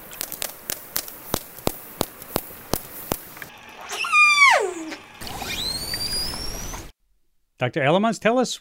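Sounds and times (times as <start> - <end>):
orca echolocation clicks: 0.0 - 3.5
orca whistled calls: 3.8 - 6.9
speech: 7.6 - 8.6.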